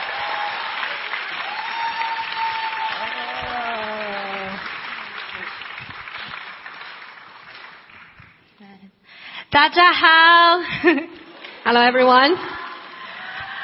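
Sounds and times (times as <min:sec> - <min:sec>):
audience applause at a church gathering welcoming a youth minister: 0:00.0 - 0:08.4, 0:12.4 - 0:13.6
speech: 0:09.6 - 0:12.5.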